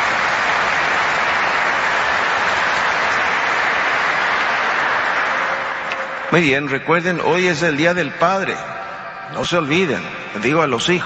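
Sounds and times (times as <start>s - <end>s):
audience applause: 0.0s - 6.5s
speech: 6.3s - 8.7s, 9.3s - 11.0s.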